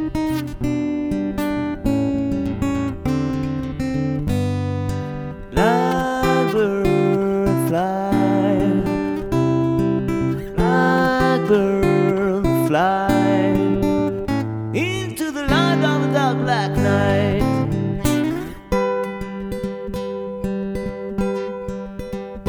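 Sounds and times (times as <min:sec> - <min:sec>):
guitar: 0:00.0 - 0:22.4
person singing solo: 0:05.4 - 0:18.4.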